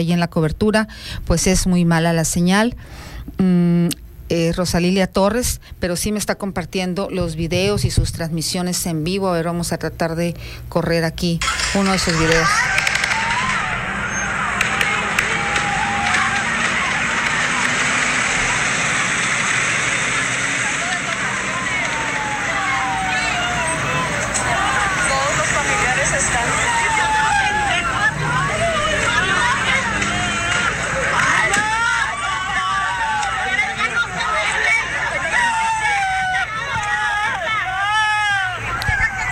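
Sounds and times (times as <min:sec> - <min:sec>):
speech: 0:00.0 - 0:12.9
frightened relatives of inmates crying outside a prison: 0:11.5 - 0:39.2.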